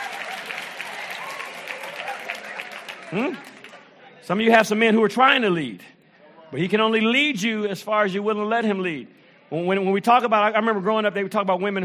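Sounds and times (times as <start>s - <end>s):
audience clapping: 0.0s - 4.0s
speech: 3.1s - 3.5s, 4.3s - 5.9s, 6.5s - 11.8s.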